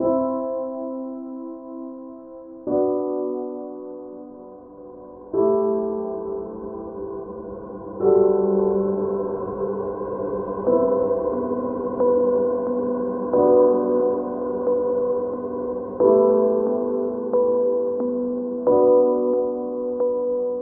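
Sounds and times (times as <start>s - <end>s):
sad piano: 0.0s - 20.6s.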